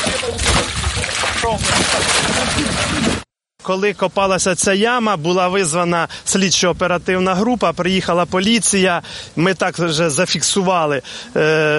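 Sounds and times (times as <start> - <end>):
fountain water splashing: 0.0 - 3.2
speech: 1.4 - 11.7.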